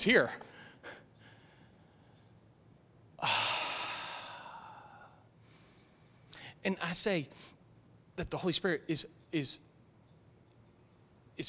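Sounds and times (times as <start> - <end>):
speech: 0.0 - 0.5, 6.6 - 7.5, 8.2 - 9.7
person groaning: 3.2 - 4.8.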